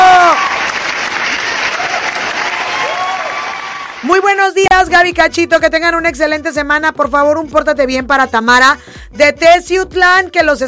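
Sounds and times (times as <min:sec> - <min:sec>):
audience applause: 0:00.0 - 0:04.1
speech: 0:04.5 - 0:10.6.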